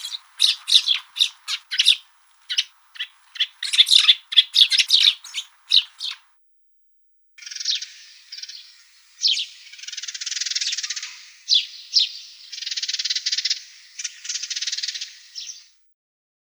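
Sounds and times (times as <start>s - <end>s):
tree sparrow calling: 0.0s - 6.3s, 7.4s - 15.8s.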